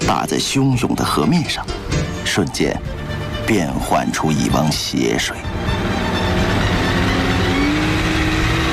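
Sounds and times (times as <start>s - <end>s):
speech: 0.1s - 5.7s
speedboat engine roaring past: 5.4s - 8.7s.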